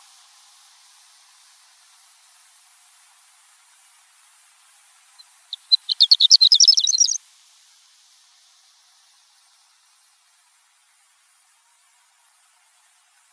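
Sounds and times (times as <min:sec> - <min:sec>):
horned lark chirping and twittering: 0:05.5 - 0:07.2.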